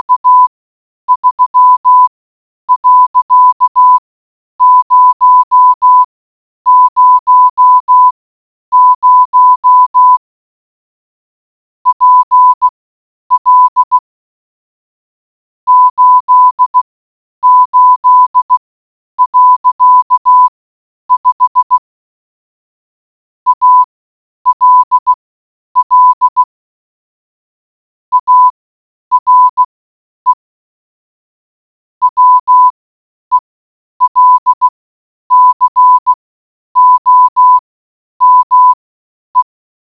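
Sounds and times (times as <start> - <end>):
morse code beeps: 0.0 - 0.5, 1.1 - 2.1, 2.7 - 4.0, 4.6 - 6.1, 6.7 - 10.2, 11.9 - 14.0, 15.7 - 18.6, 19.2 - 20.5, 21.1 - 21.9, 23.5 - 23.9, 24.5 - 25.2, 25.8 - 26.5, 28.1 - 29.7, 32.0 - 36.1, 36.8 - 37.6, 38.2 - 38.8.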